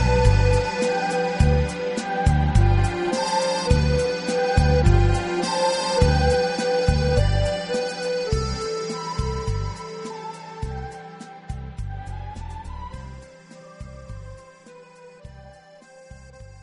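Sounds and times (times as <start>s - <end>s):
accordion tune: 0.0s - 11.2s.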